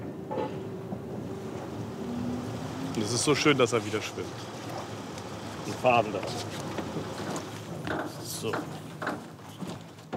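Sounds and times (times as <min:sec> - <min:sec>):
water noise: 0:00.0 - 0:09.0
small fast passenger ferry between Norddeich and Juist rumbling: 0:00.0 - 0:09.5
wind: 0:00.0 - 0:10.1
speech: 0:03.0 - 0:04.5, 0:05.7 - 0:06.7, 0:08.4 - 0:09.2.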